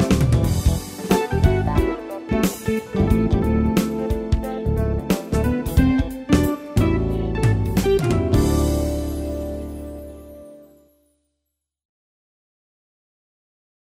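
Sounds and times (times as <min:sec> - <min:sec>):
jazzy music: 0:00.0 - 0:11.0.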